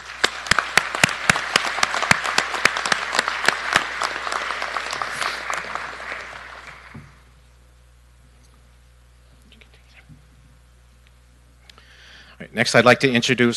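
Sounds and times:
audience applause: 0.0s - 7.3s
speech: 12.6s - 13.5s.

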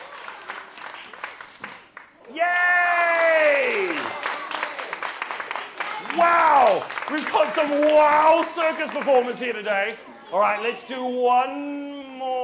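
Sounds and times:
audience applause: 0.0s - 9.7s
speech: 2.3s - 2.6s, 6.2s - 11.9s.

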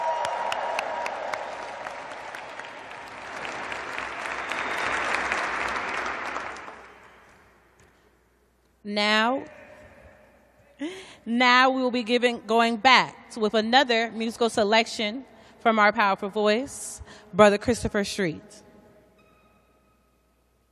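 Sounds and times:
audience applause: 0.0s - 7.4s
speech: 8.9s - 9.6s, 10.8s - 18.6s.

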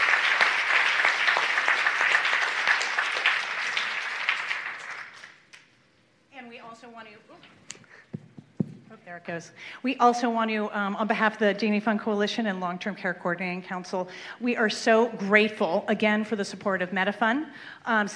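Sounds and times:
audience applause: 0.0s - 5.4s
speech: 9.1s - 18.1s.

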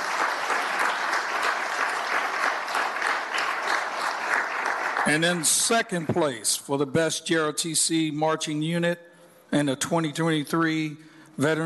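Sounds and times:
applause: 0.0s - 6.4s
speech: 5.1s - 11.6s.

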